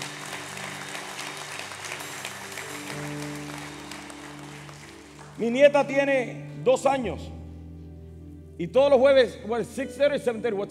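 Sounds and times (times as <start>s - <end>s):
audience applause: 0.0s - 5.5s
speech: 5.4s - 7.4s, 8.6s - 10.6s.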